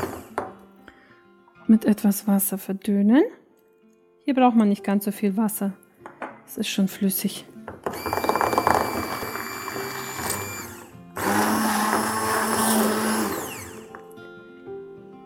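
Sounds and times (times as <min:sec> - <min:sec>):
blender mixing a dressing: 0:00.0 - 0:00.4, 0:07.9 - 0:14.0
speech: 0:01.7 - 0:03.4, 0:04.3 - 0:05.8, 0:06.5 - 0:08.2.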